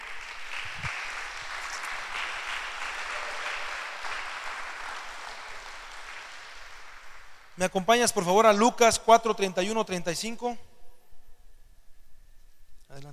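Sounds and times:
audience applauding: 0.0s - 7.6s
speech: 7.6s - 10.7s.

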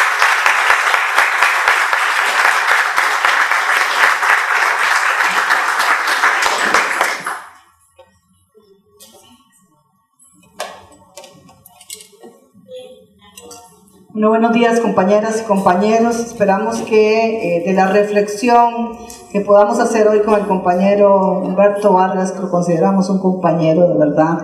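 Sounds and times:
crowd applauding: 0.0s - 7.7s
speech: 14.2s - 24.4s.

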